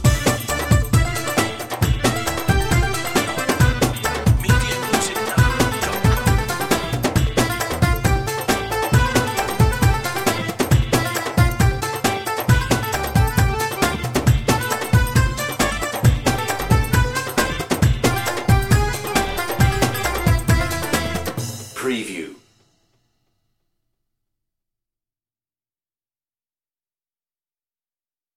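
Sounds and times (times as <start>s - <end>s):
oriental dance party music without synth lead: 0.0s - 22.3s.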